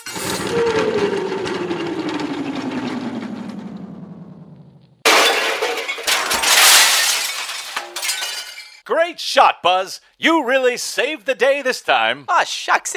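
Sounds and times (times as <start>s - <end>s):
crash of metal and debris as a transmission tower comes down: 0.0s - 0.5s, 5.0s - 8.8s
long steadily falling whine: 0.0s - 5.0s
speech: 9.1s - 12.9s.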